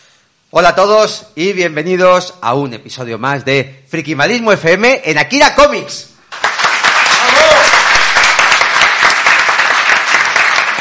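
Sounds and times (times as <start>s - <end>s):
speech: 0.5s - 6.1s
audience applause: 6.3s - 10.8s.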